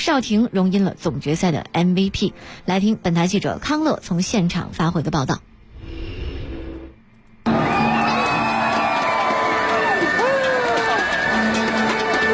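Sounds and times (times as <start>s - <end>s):
speech: 0.0s - 5.5s
basketball arena crowd cheering after championship: 7.5s - 12.3s.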